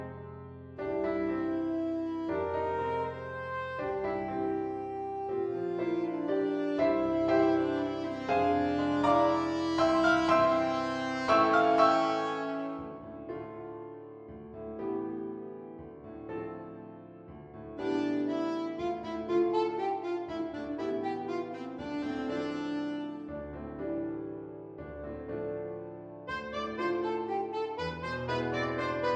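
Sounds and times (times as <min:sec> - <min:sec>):
alto saxophone: 0:00.7 - 0:13.7, 0:17.8 - 0:23.9, 0:26.2 - 0:29.1.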